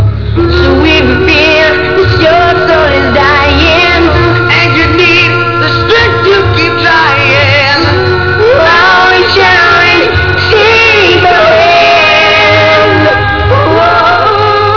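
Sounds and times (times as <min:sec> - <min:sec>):
a cappella singing: 0:00.3 - 0:14.7.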